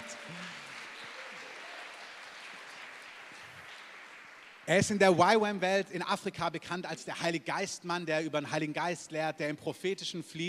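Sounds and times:
audience applause: 0.0s - 5.2s
speech: 4.7s - 10.4s.

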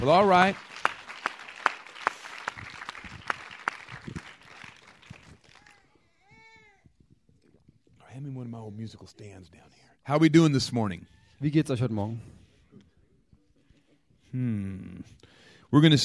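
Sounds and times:
speech: 0.0s - 0.7s, 8.5s - 12.4s, 14.3s - 16.0s
audience applause: 0.0s - 5.9s.

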